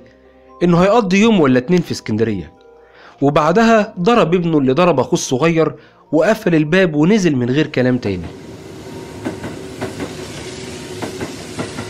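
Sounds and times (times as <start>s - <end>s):
speech: 0.6s - 2.6s, 3.2s - 8.4s
train riding on rails: 8.2s - 11.8s
wheels clacking over track joints: 9.0s - 11.8s.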